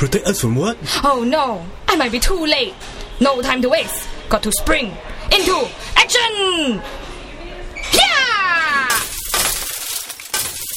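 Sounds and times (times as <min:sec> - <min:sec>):
speech: 0:00.0 - 0:07.0
glasses knocked off tables, shattering: 0:08.8 - 0:10.7.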